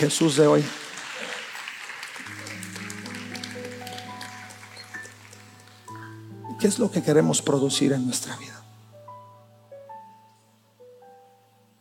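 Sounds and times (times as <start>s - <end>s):
speech: 0.0s - 0.9s, 6.6s - 8.6s
crowd applauding: 0.0s - 6.0s.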